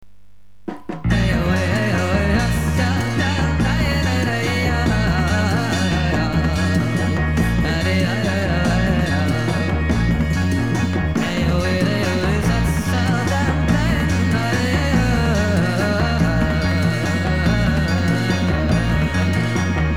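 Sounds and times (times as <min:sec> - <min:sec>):
Indo-jazz music: 0:00.6 - 0:19.9.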